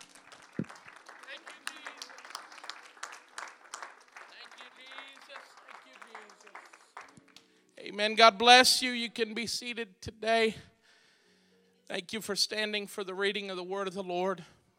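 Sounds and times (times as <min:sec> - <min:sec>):
crowd applauding in a large room: 0:00.0 - 0:07.5
speech: 0:08.0 - 0:10.7, 0:11.9 - 0:14.6.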